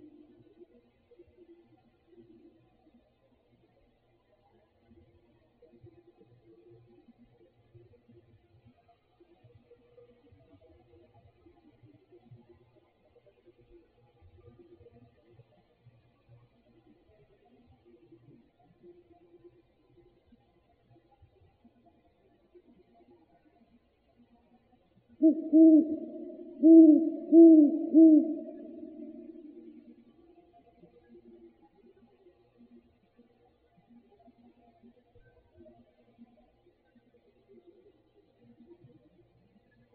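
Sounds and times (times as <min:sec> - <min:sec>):
owls: 0:25.2 - 0:29.7.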